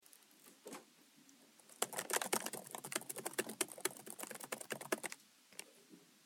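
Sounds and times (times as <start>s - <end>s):
typing: 1.7s - 5.2s.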